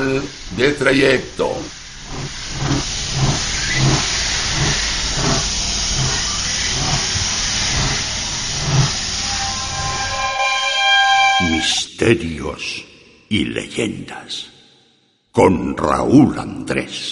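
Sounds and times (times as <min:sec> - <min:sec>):
steam train pulling into platform 4 of a station: 0:00.0 - 0:11.8
speech: 0:00.1 - 0:04.0, 0:11.6 - 0:14.5, 0:15.4 - 0:17.1
high squeal: 0:01.4 - 0:11.9.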